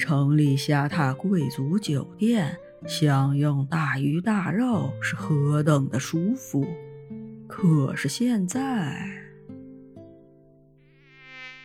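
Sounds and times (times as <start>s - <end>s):
speech: 0.0s - 6.9s, 7.5s - 9.2s
tropical mosquitoes buzzing: 10.9s - 11.6s.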